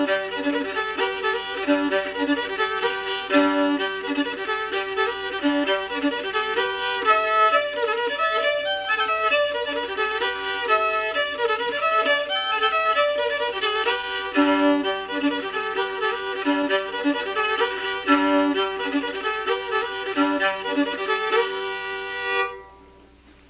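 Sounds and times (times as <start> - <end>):
cornstalk fiddle played with a shoestring bow: 0.0 - 23.0.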